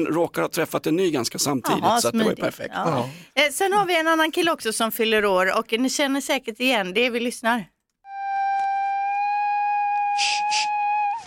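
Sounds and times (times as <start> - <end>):
speech: 0.0 - 7.8
simple bagpipe droning: 8.1 - 11.2.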